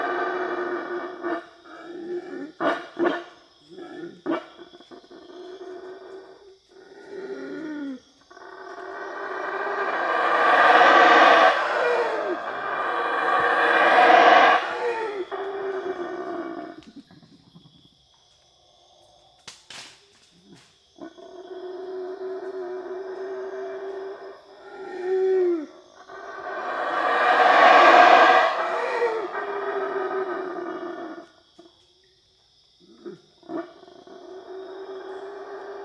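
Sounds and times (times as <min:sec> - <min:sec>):
black howler monkey calling: 0:00.0 - 0:17.3, 0:21.1 - 0:31.2.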